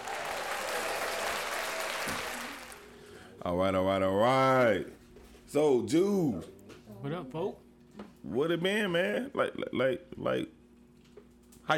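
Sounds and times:
audience clapping: 0:00.0 - 0:03.0
speech: 0:03.4 - 0:07.6, 0:08.2 - 0:10.6.

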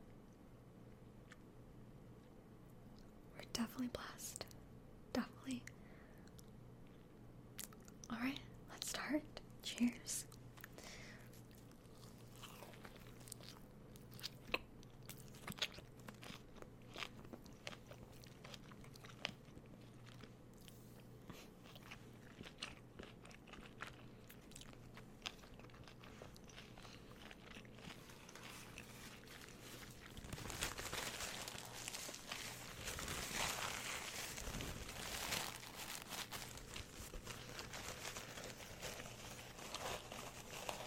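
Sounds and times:
faint low hum: 0:00.0 - 0:40.8
speech: 0:03.6 - 0:04.4, 0:05.2 - 0:05.8, 0:08.1 - 0:08.4, 0:09.1 - 0:10.3
biting and chewing a crunchy biscuit: 0:10.3 - 0:40.8.

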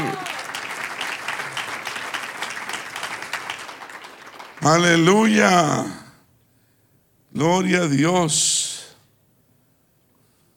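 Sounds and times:
audience applause: 0:00.0 - 0:05.0
speech: 0:04.6 - 0:06.0, 0:07.4 - 0:08.6.

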